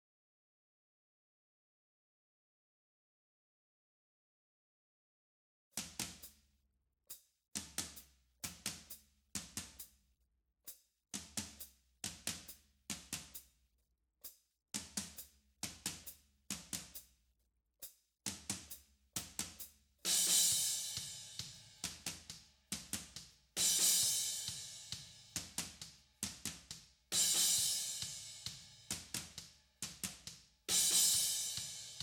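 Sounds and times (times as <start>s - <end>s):
drums: 5.8s - 6.4s, 7.6s - 10.0s, 11.2s - 13.5s, 14.2s - 17.1s, 17.8s - 32.0s.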